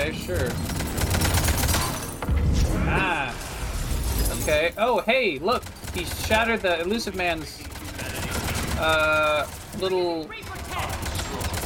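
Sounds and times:
video game gunfire: 0.0s - 4.2s, 5.4s - 11.6s
speech: 4.5s - 7.7s, 8.8s - 10.4s.

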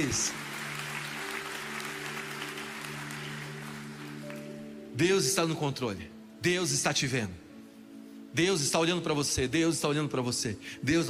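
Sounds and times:
speech: 0.0s - 0.4s, 5.0s - 7.4s, 8.4s - 11.0s
audience applauding: 0.0s - 4.8s.

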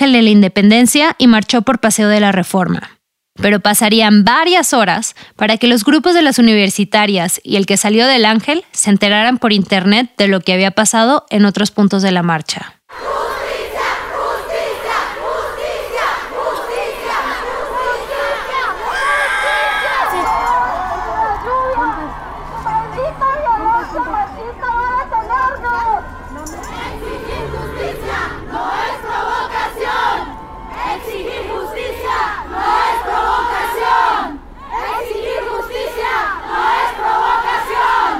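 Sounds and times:
speech: 0.0s - 13.2s
thousands of women chanting at a feminist march on Paseo de la Reforma, Mexico City: 12.9s - 38.1s.

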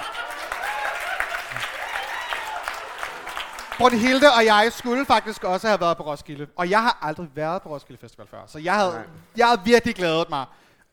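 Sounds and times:
audience clapping: 0.0s - 5.8s
speech: 3.8s - 10.9s.

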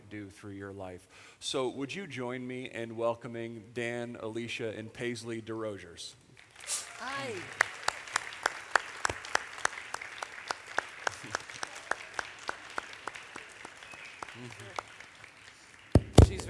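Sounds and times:
speech: 0.1s - 7.7s
hand clapping: 6.5s - 16.4s.

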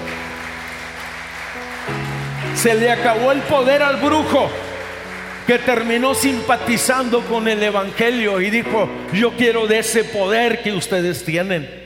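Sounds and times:
audience applauding: 0.0s - 9.2s
speech: 2.6s - 4.6s, 5.5s - 11.8s.

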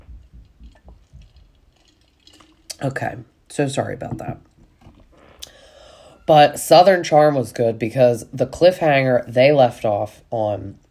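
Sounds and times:
sipping water: 0.0s - 6.3s
speech: 2.8s - 4.5s, 6.3s - 10.8s.

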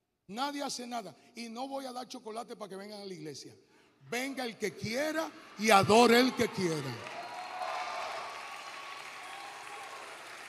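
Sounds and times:
speech: 0.3s - 7.2s
applause: 5.7s - 10.4s.

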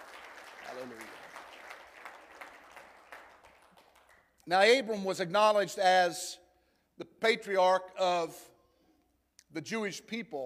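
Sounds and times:
audience clapping hands: 0.0s - 4.5s
speech: 0.7s - 1.2s, 4.5s - 6.4s, 7.2s - 8.5s, 9.5s - 10.4s.

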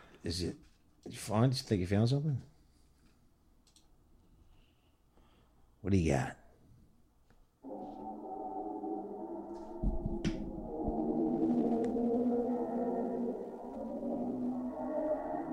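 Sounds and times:
speech: 0.2s - 2.5s, 5.8s - 6.4s
recorded black hole sound: 7.6s - 15.5s
low thuds: 9.7s - 12.0s.

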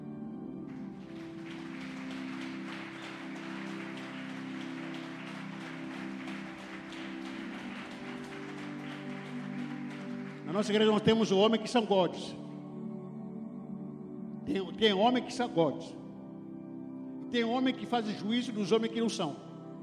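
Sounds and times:
sustained keyboard or organ chord: 0.0s - 19.8s
crowd clapping: 0.7s - 12.0s
speech: 10.5s - 12.4s, 14.8s - 16.0s, 17.3s - 19.5s.

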